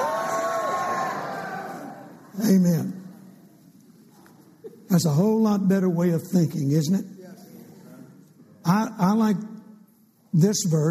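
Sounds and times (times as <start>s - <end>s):
audience shouting praise: 0.0s - 2.2s
speech: 2.4s - 3.0s, 4.9s - 7.2s, 8.7s - 9.5s, 10.3s - 10.9s.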